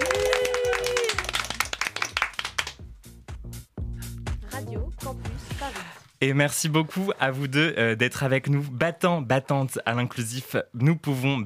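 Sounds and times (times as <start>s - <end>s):
audience applause: 0.0s - 2.8s
speech: 6.2s - 11.4s.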